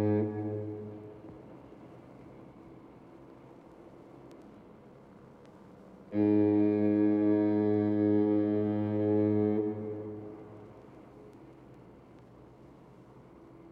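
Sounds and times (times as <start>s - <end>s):
marine foghorn: 0.0s - 1.3s, 6.1s - 11.3s.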